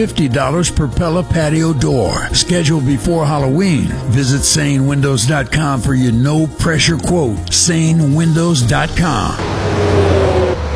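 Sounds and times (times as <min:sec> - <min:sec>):
speech: 0:00.0 - 0:10.0
cars passing on Highway 70: 0:09.1 - 0:10.7.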